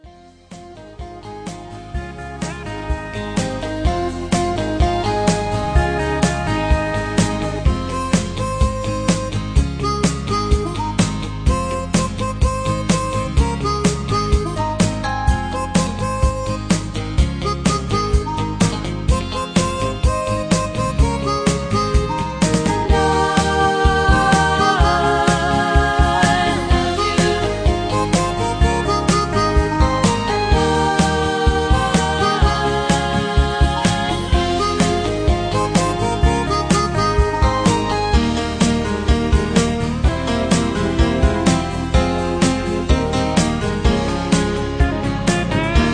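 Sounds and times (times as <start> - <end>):
instrumental music: 0.0 - 45.9
backing vocals: 22.9 - 29.4, 30.3 - 36.0.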